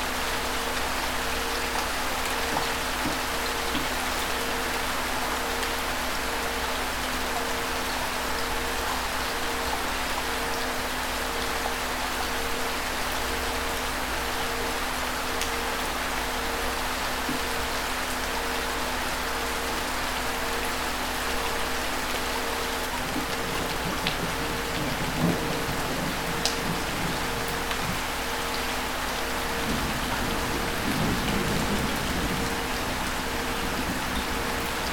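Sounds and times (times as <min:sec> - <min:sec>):
gentle rain: 0:00.0 - 0:34.9.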